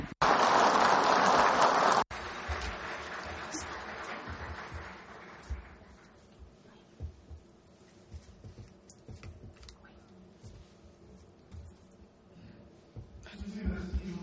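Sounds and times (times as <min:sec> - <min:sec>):
loud applause: 0:00.0 - 0:05.7.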